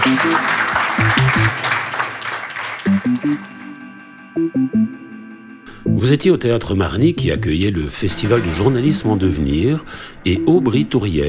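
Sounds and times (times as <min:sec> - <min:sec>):
audience applauding warmly: 0:00.0 - 0:03.8
speech: 0:00.1 - 0:01.6, 0:06.0 - 0:11.2.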